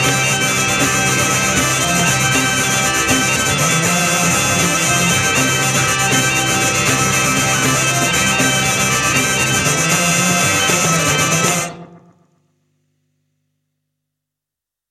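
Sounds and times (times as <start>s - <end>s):
bourree dance music: 0.0s - 11.9s.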